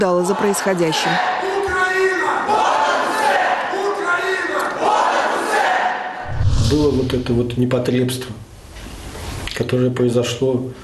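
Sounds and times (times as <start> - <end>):
speech: 0.0 - 1.8, 6.7 - 8.5, 9.6 - 10.8
protesters shouting: 0.4 - 6.2.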